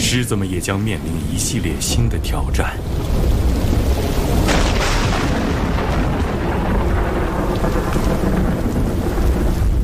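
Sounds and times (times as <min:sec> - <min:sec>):
deep thunder rumbling with a sharp crack: 0:00.0 - 0:09.8
heavy rain: 0:00.0 - 0:09.8
speech: 0:00.1 - 0:03.8, 0:07.6 - 0:08.7.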